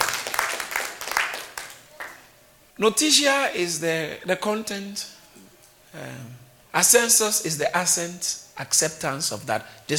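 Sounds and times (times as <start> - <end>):
group of people applauding: 0.0 - 2.2
speech: 2.8 - 5.2, 6.0 - 9.9.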